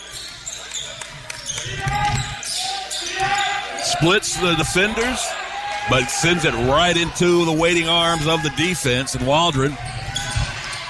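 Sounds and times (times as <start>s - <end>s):
basketball court noise: 0.0s - 10.8s
commentator talking: 3.8s - 5.3s, 5.9s - 9.8s
speech: 4.0s - 10.0s
basketball being dribbled during a game: 9.8s - 10.7s.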